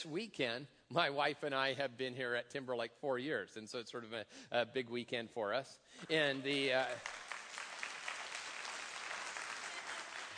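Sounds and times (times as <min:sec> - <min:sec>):
speech: 0:00.0 - 0:07.2
audience applause at a concert: 0:06.4 - 0:10.3.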